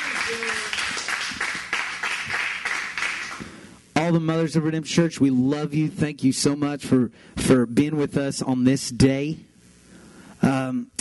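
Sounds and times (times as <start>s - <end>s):
audience applause: 0.0s - 3.4s
speech: 0.3s - 0.7s, 4.1s - 9.5s, 10.4s - 10.9s.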